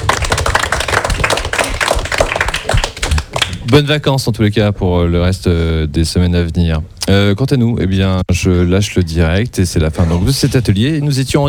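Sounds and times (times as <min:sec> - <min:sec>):
audience applause: 0:00.0 - 0:03.6
speech: 0:03.7 - 0:11.4.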